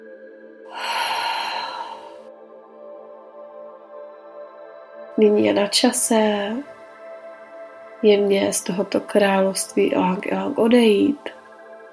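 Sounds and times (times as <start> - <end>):
soft sustained musical drone: 0.0 - 11.9
person taking a deep breath during a guided relaxation exercise: 0.7 - 2.3
speech: 5.2 - 6.7, 8.0 - 11.4.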